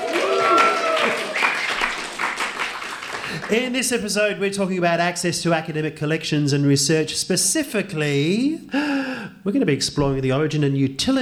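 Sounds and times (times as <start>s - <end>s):
audience applause at a live science-week recording at Flinders University: 0.0s - 3.7s
speech: 3.5s - 11.2s.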